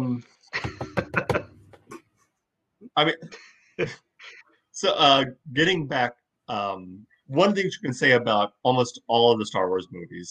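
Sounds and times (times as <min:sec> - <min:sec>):
speech: 0:00.0 - 0:00.6, 0:03.0 - 0:04.0, 0:04.8 - 0:10.2
golf clap, soft polite clapping: 0:00.6 - 0:02.0.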